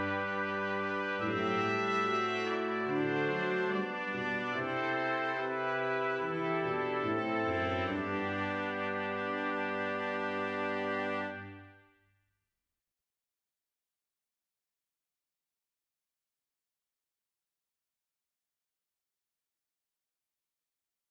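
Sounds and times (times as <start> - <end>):
brass quintet playing: 0.0 - 11.8.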